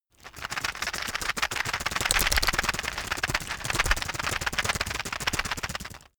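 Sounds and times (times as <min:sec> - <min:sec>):
plastic drug blister pack shaken hard: 0:00.2 - 0:06.1.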